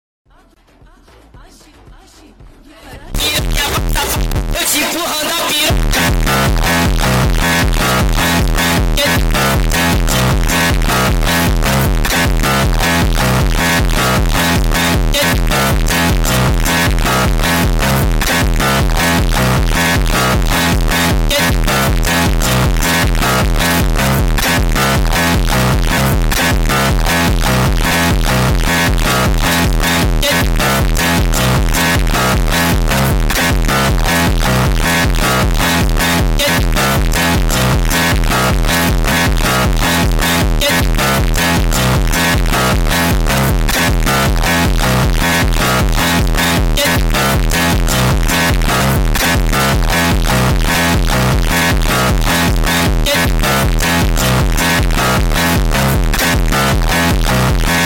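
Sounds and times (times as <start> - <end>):
Brazilian phonk music: 0.6 - 57.8.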